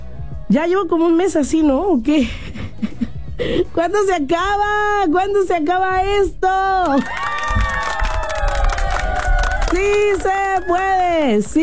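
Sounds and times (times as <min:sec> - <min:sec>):
speech: 0:00.5 - 0:02.6, 0:03.4 - 0:07.2, 0:09.7 - 0:11.6
crowd cheering and shouting: 0:07.0 - 0:11.2.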